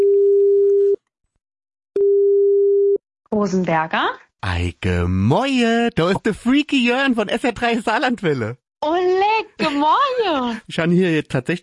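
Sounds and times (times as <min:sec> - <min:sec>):
telephone call ringing tone: 0:00.0 - 0:01.0, 0:02.0 - 0:03.0
speech: 0:03.3 - 0:11.6.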